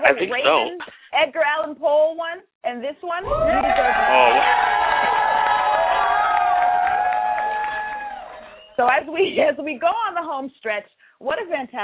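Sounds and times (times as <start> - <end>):
speech: 0.1 - 5.1, 8.8 - 11.8
crowd cheering with whoops: 3.2 - 9.0.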